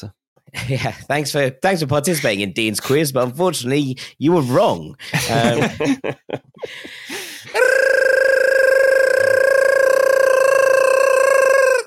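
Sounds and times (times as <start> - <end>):
speech: 0.0 - 7.9
laughter: 5.2 - 7.6
squeaky high-pitched vocal babble and chattering: 7.6 - 11.8.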